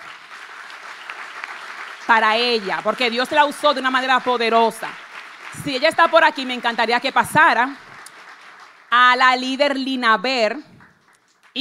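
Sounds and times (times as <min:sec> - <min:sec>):
audience applause: 0:00.0 - 0:09.0
speech: 0:02.1 - 0:07.8, 0:08.9 - 0:10.7.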